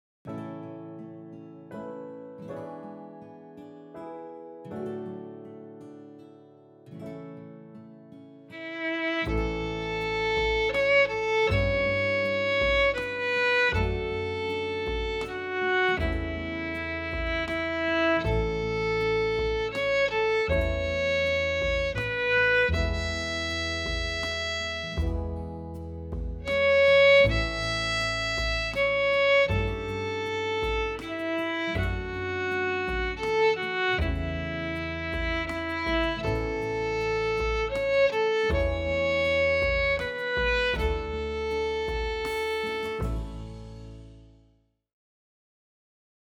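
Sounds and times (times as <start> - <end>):
violin: 8.5 - 43.9.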